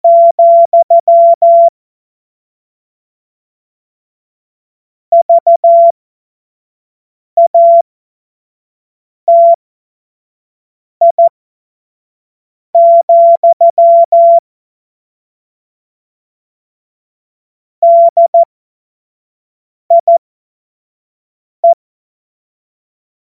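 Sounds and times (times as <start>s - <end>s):
CW Morse code beeps: 0.0s - 1.7s, 5.2s - 5.9s, 7.4s - 7.8s, 9.3s - 9.6s, 11.0s - 11.3s, 12.8s - 14.4s, 17.8s - 18.5s, 19.9s - 20.2s.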